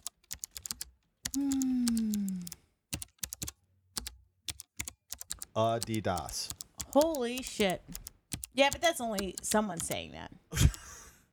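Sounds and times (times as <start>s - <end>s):
typing on a computer keyboard: 0.0s - 10.2s
speech: 5.6s - 8.0s, 8.6s - 10.7s.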